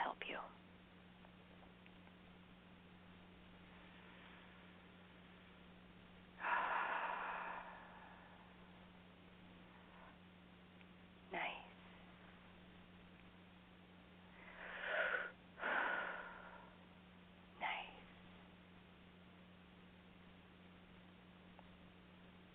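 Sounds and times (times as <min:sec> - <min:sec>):
faint steady low hum: 0:00.0 - 0:22.5
slow deep human breathing: 0:03.6 - 0:05.2, 0:06.4 - 0:10.2, 0:14.2 - 0:16.9.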